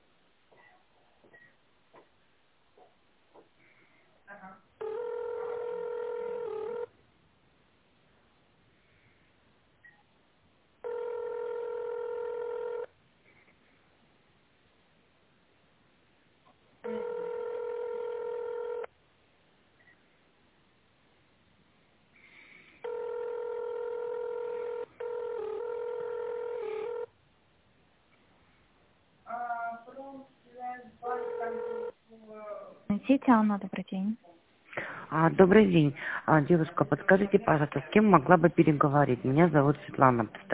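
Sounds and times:
telephone tone-dialing beeps: 4.8s - 6.9s, 10.8s - 12.9s, 16.8s - 18.9s, 22.8s - 27.1s, 31.2s - 32.0s
speech: 33.1s - 34.3s, 35.1s - 40.5s.

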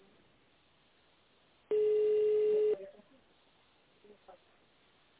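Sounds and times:
telephone keypad tone dialing an extension number: 1.7s - 2.7s.

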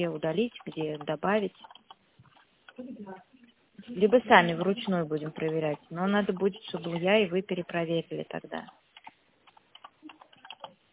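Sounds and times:
speech: 0.0s - 1.8s, 2.8s - 8.8s
typing on a keyboard: 0.5s - 2.8s, 9.0s - 10.8s.

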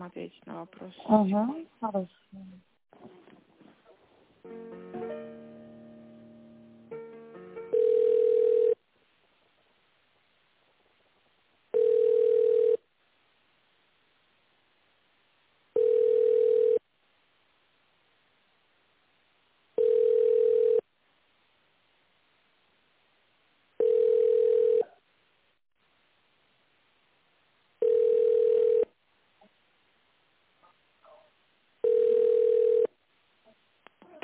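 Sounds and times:
speech: 0.1s - 2.7s
mixed electronic telephone tones: 6.9s - 8.8s, 11.7s - 12.8s, 15.8s - 16.8s, 19.8s - 20.8s, 23.8s - 24.9s, 27.8s - 28.9s, 31.8s - 32.9s.

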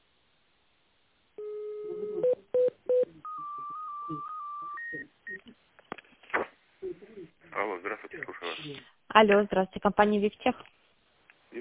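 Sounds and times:
tone dialing of an internal extension: 1.4s - 5.4s
speech: 8.6s - 10.8s.

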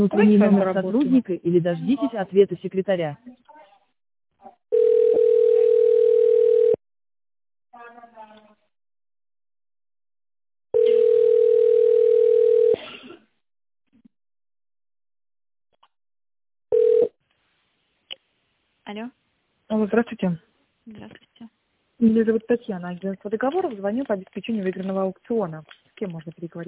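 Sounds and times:
speech: 0.0s - 3.5s, 18.9s - 26.6s
phone ringback tone over a phone line: 4.7s - 6.8s, 10.7s - 12.8s, 16.7s - 17.1s.

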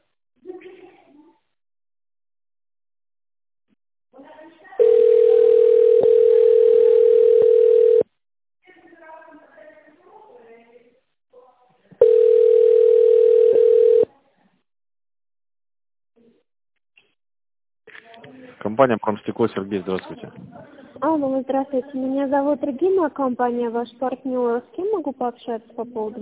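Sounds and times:
telephone signal tone: 4.8s - 8.0s, 12.0s - 14.1s
speech: 18.8s - 26.2s.

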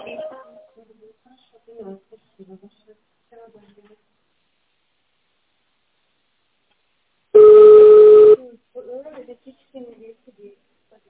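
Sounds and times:
electronic keypad tone in an automated phone menu for a car company: 7.4s - 8.4s.

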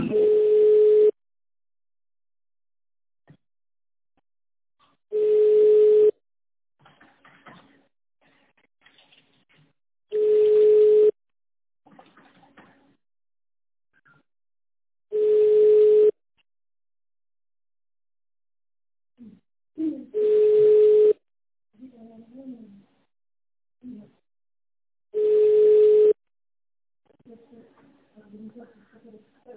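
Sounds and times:
telephone tones while a call is transferred: 0.1s - 1.2s, 5.1s - 6.2s, 10.1s - 11.2s, 15.1s - 16.2s, 20.2s - 21.2s, 25.2s - 26.2s.

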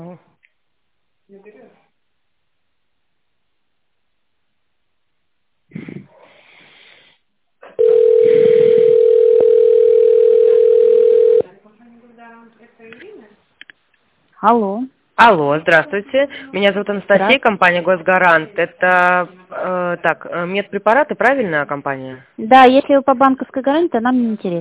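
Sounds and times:
speech: 1.3s - 1.8s, 14.4s - 24.5s
telephone line tone while waiting for answer: 7.7s - 11.5s.

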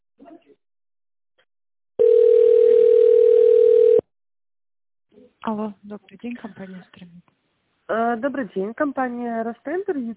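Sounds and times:
telephone ringback tone while waiting for an operator: 2.0s - 4.0s
speech: 5.5s - 10.1s.

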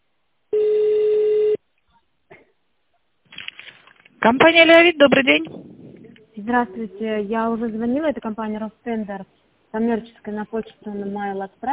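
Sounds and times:
telephone ringback tone during call transfer: 0.6s - 1.6s
speech: 4.2s - 5.7s, 6.4s - 11.7s.

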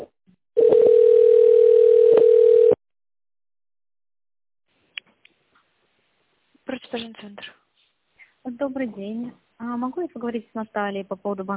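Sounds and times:
telephone ringback tone while a call transfers to an operator: 0.6s - 2.8s
speech: 6.9s - 7.6s, 8.4s - 11.5s.

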